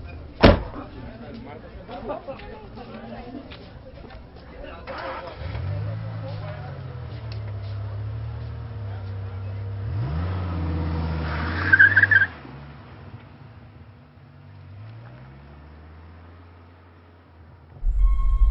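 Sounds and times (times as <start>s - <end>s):
speech: 1.4s - 5.6s
car engine cranking and starting: 4.8s - 18.4s.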